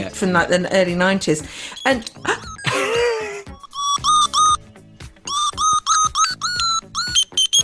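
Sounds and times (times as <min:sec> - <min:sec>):
speech: 0:00.0 - 0:02.9
key finder beeping with low batteries: 0:01.8 - 0:02.6, 0:03.5 - 0:04.6, 0:05.3 - 0:07.6.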